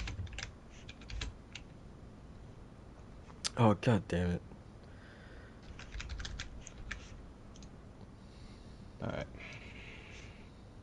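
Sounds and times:
keyboard typing while writing a tweet: 0.0 - 1.7, 5.6 - 7.7
speech: 3.6 - 4.5.

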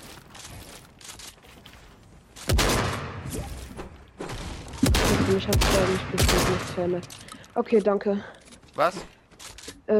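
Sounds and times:
gunshots in Fortnite: 2.4 - 3.7, 4.6 - 7.1
speech: 5.3 - 9.2.

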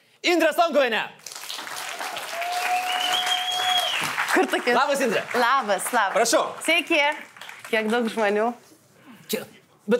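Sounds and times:
speech: 0.2 - 1.2, 4.4 - 8.6, 9.3 - 9.9
audience applause greeting a well-known TV host on stage: 1.2 - 8.3
sustained whistle: 2.8 - 4.0.

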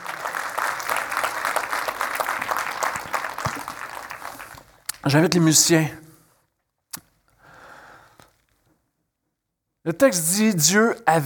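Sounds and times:
audience applause: 0.0 - 4.8
speech: 5.0 - 6.0, 9.9 - 11.2.

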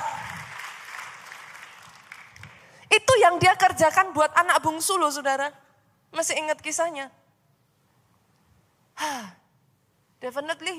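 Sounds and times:
audience applause: 0.0 - 2.6
speech: 3.0 - 7.2, 10.2 - 10.7.

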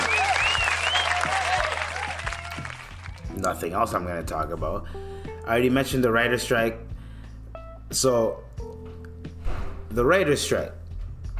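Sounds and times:
applause: 0.0 - 3.3
speech: 3.4 - 6.9, 7.9 - 8.5, 10.0 - 10.8.

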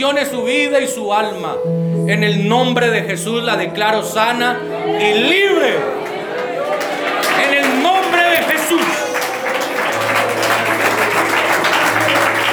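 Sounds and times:
speech: 0.0 - 6.0
crowd chatter: 3.0 - 12.5
cheering voices: 4.6 - 12.5
audience clapping: 5.7 - 12.5.

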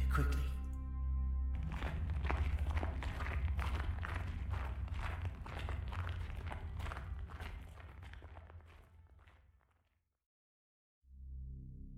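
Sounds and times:
speech: 0.1 - 0.5
footsteps crunching through snow: 1.6 - 9.4.

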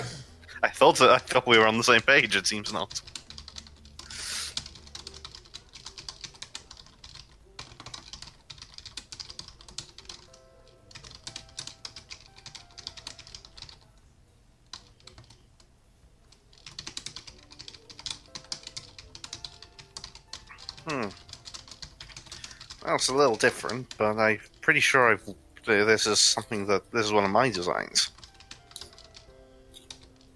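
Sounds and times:
speech: 0.8 - 3.2, 23.0 - 28.1
keyboard typing: 2.7 - 14.0, 14.6 - 15.5, 16.2 - 24.0, 27.5 - 30.3.

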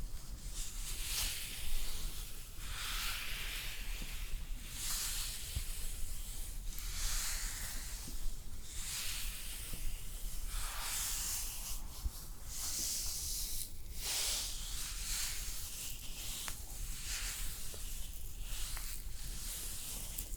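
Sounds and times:
soft hiss of spa facial sounds: 0.0 - 20.3.

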